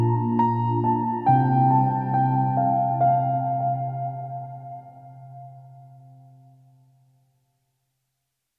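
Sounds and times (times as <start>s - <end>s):
piano theme: 0.0s - 6.8s.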